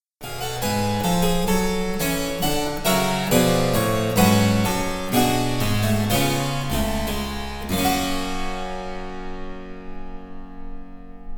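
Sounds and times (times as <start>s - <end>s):
harpsichord: 0.2s - 11.3s.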